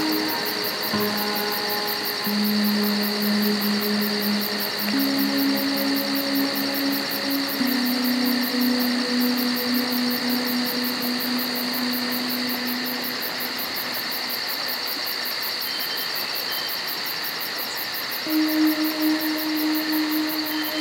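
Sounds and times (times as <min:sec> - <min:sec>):
crickets chirping in the evening in Florida: 0:00.0 - 0:20.7.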